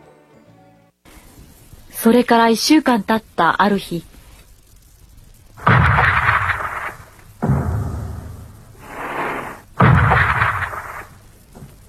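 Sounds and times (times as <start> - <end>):
speech: 2.0 - 4.1
heavy naval gunfire bombardment shaking the ground: 5.6 - 8.9, 9.8 - 11.2.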